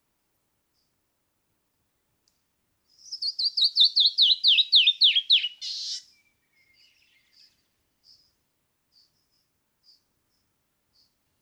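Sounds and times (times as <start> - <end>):
canyon wren cascading whistled song: 2.9 - 7.6.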